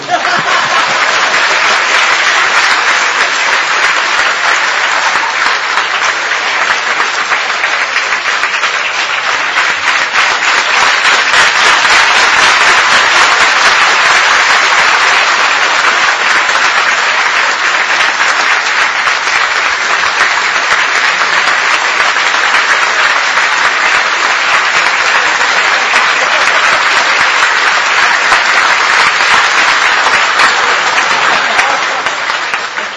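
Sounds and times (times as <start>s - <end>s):
people chuckling: 0.0s - 1.4s, 24.9s - 27.2s, 30.4s - 32.9s
large audience clapping: 0.0s - 32.9s.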